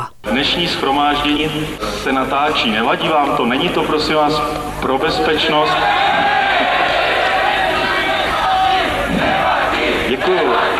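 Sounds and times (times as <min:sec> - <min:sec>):
speech: 0:00.3 - 0:06.8
large crowd shouting a reply at a rally: 0:05.6 - 0:10.7.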